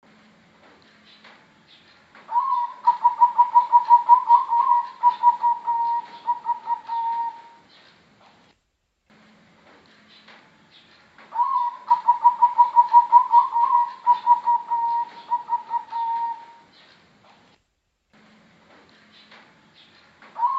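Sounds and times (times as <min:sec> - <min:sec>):
Bangkok type zebra dove singing quick evenly pulsed coos: 0:02.3 - 0:07.6, 0:11.3 - 0:16.7, 0:20.4 - 0:20.5.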